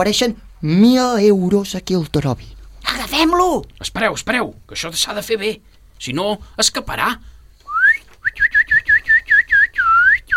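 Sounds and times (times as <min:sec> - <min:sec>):
speech: 0:00.0 - 0:07.3
person whistling to imitate a bird: 0:07.6 - 0:10.3.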